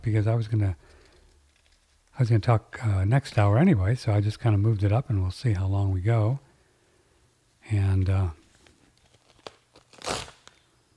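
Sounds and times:
speech: 0.0 - 1.0, 2.2 - 6.5, 7.7 - 8.4
paper ripping: 8.5 - 10.7.

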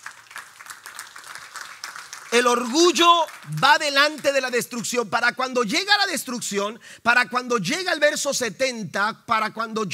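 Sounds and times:
audience applauding: 0.0 - 4.6
speech: 2.4 - 9.9.

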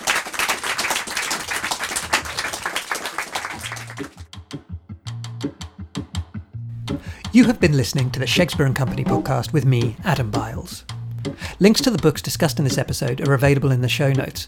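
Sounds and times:
audience applause: 0.0 - 4.3
speech: 7.4 - 10.9, 11.6 - 14.4.

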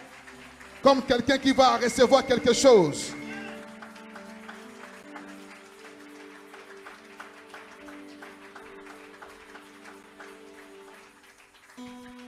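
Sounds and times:
audience applause and acclamation: 0.0 - 12.2
speech: 0.8 - 3.2.

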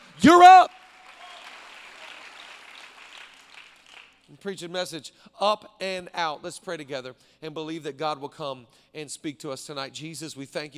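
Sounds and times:
crowd clapping: 0.0 - 4.3
speech: 0.2 - 0.8, 4.3 - 10.7.

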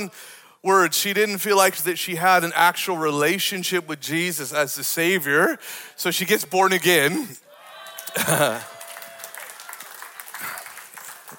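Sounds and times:
speech: 0.0 - 7.4, 8.2 - 8.7
audience clapping: 7.8 - 11.3
laughter: 8.0 - 8.9.

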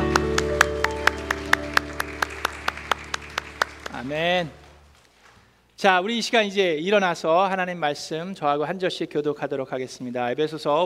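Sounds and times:
audience applauding: 0.0 - 5.0
speech: 4.0 - 4.6, 5.8 - 10.8.

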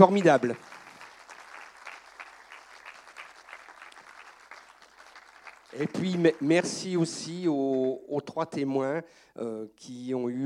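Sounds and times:
speech: 0.0 - 0.7, 5.8 - 10.4
applause: 0.0 - 8.0.

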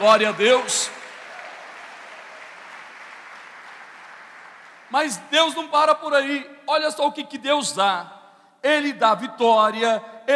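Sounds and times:
speech: 0.0 - 1.0, 4.9 - 10.1
audience applause: 0.0 - 4.9.

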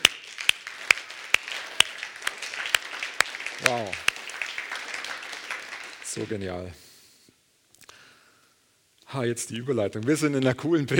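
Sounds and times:
sharp regular clap: 0.0 - 6.7
crowd applauding: 0.0 - 6.8
speech: 3.6 - 4.1, 6.1 - 6.8, 9.1 - 10.9.

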